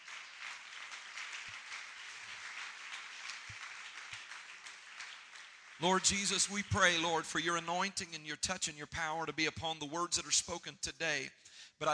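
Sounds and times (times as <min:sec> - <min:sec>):
audience clapping: 0:00.0 - 0:08.6
speech: 0:05.8 - 0:11.9.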